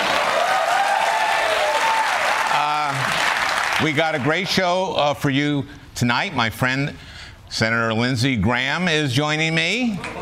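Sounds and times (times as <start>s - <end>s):
audience applause: 0.0s - 4.5s, 10.0s - 10.2s
speech: 3.8s - 10.2s.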